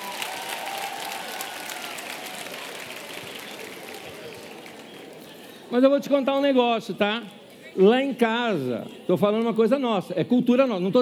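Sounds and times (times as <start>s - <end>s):
women in audience applauding: 0.0s - 5.2s
speech: 5.7s - 10.9s.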